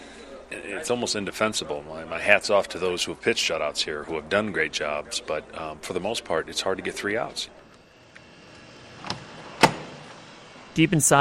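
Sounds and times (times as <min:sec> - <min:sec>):
speech: 0:00.5 - 0:07.6, 0:10.8 - 0:11.1
door to a baseball humidor deep inside a stadium opening: 0:08.5 - 0:10.2.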